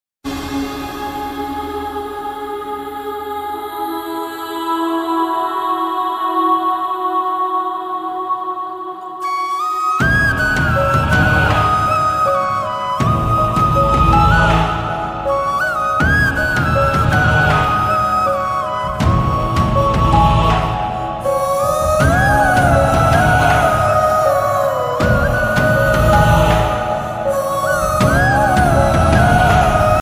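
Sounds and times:
emotional music: 0:00.3 - 0:29.9.

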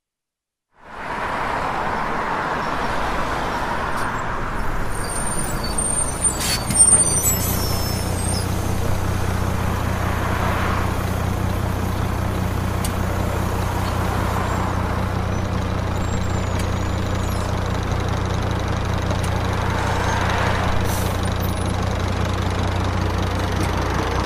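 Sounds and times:
bus arriving: 0:00.8 - 0:24.2.

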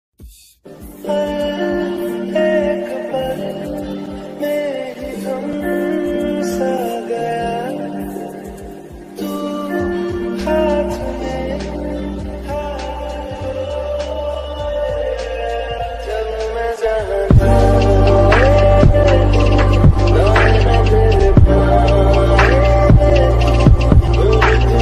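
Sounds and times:
romantic Hindi love ringtone: 0:01.0 - 0:24.7.

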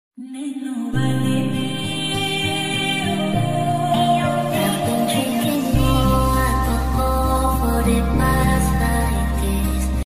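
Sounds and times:
romantic ringtone: 0:01.0 - 0:10.0.

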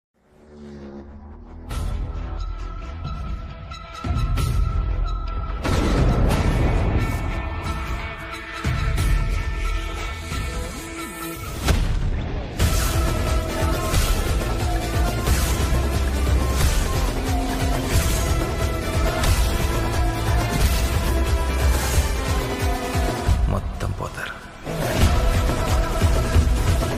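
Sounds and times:
Telugu trailer ringtone: 0:00.2 - 0:26.9.

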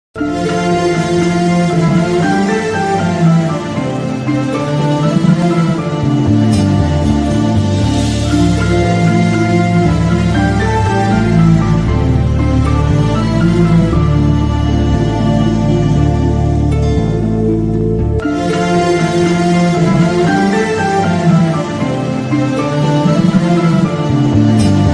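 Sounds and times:
Tamil love background music ringtone: 0:00.2 - 0:24.9.

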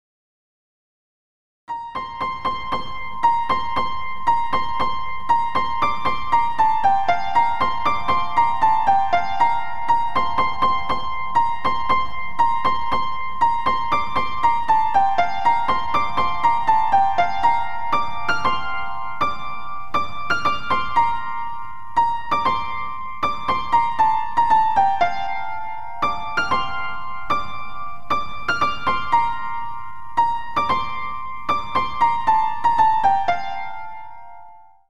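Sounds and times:
piano: 0:01.7 - 0:34.9.

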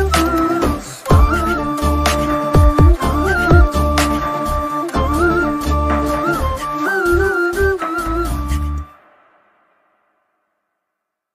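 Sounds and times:
flute remix ringtone: 0:00.0 - 0:09.0.

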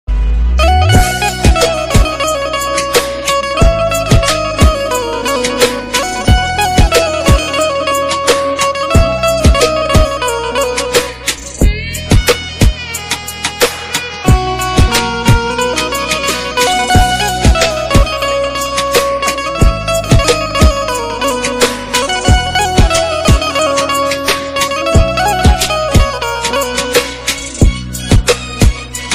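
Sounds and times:
Gujarati ringtone: 0:00.6 - 0:29.1.

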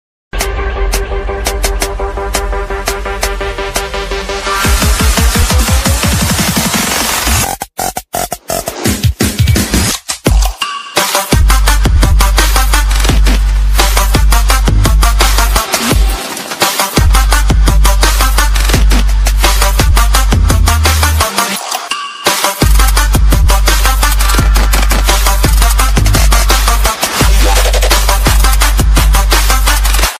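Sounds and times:
vlog intro ringtone music: 0:00.4 - 0:30.1.

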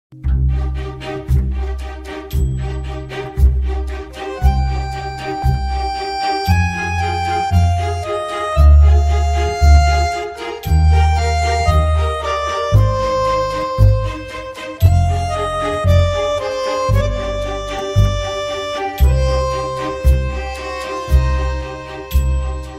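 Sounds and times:
film background music ringtone: 0:00.3 - 0:22.7.

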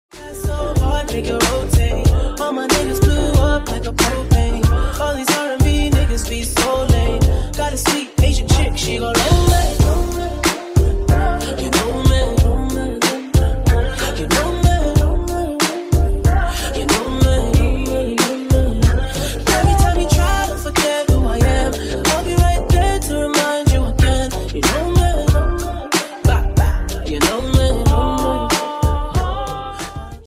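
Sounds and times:
remix music: 0:00.1 - 0:30.2.

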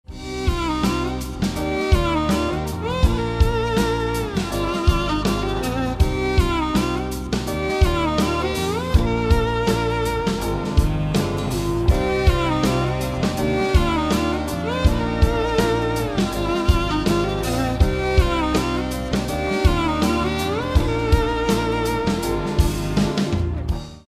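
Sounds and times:
instrumental violin background music ringtone: 0:00.1 - 0:23.5.

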